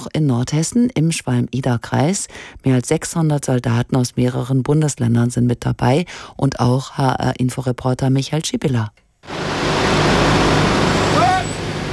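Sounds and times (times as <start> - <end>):
speech: 0.0 - 10.2
column of heavy military trucks rolling by: 9.3 - 11.9
high brake squeal: 9.4 - 11.9.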